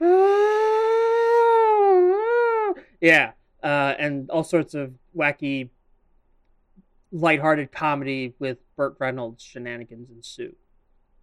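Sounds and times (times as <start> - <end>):
voice imitating an ambulance siren: 0.0 - 2.8
speech: 3.0 - 5.8, 7.1 - 10.6.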